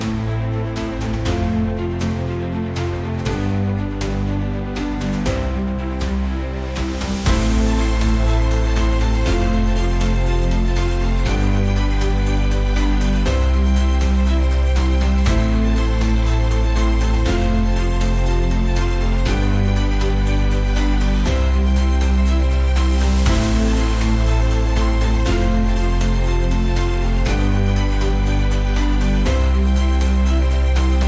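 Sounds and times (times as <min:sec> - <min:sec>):
epic string music: 0:00.0 - 0:31.0.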